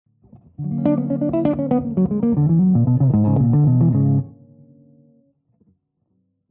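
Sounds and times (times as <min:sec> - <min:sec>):
Lydian jazz melodic lines: 0:00.7 - 0:04.3.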